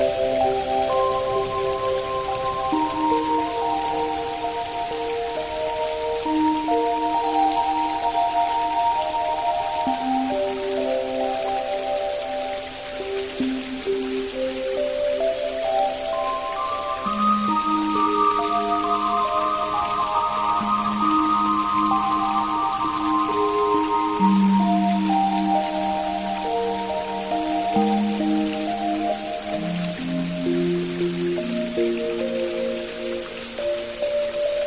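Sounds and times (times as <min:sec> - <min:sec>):
flowing water in a forest: 0:00.0 - 0:34.6
relaxation music: 0:00.0 - 0:34.6.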